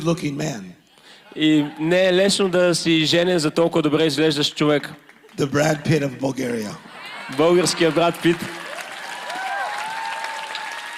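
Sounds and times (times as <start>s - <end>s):
speech: 0.0s - 8.6s
laughter: 1.1s - 2.6s, 5.3s - 8.6s
audience clapping: 4.3s - 6.0s, 7.0s - 10.9s
faint whoops and cheers: 7.0s - 10.9s.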